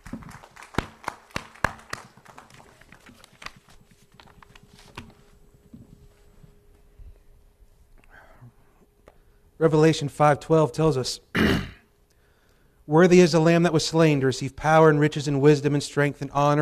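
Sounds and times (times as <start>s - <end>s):
applause: 0.0s - 3.6s
speech: 9.6s - 11.6s, 13.0s - 16.5s.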